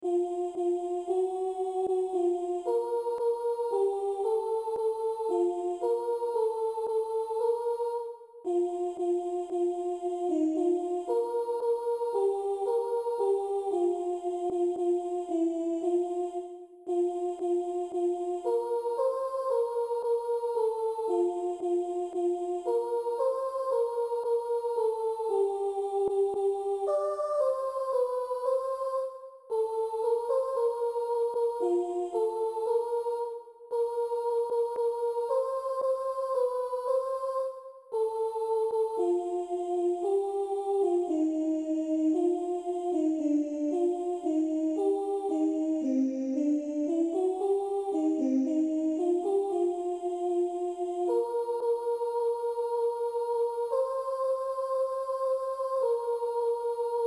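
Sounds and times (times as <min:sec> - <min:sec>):
MIDI soprano melody: 0:00.0 - 0:57.0.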